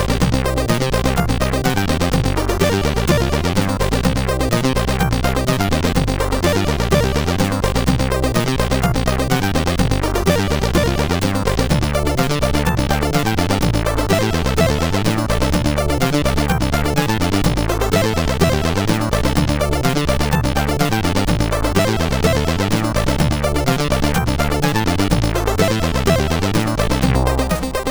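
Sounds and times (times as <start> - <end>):
chiptune banjo tune on SID CSG8580R5 chip: 0.0 - 27.9.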